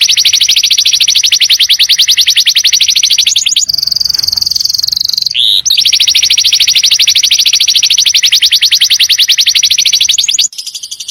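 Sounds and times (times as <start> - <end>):
white-eye song: 0.0 - 10.5.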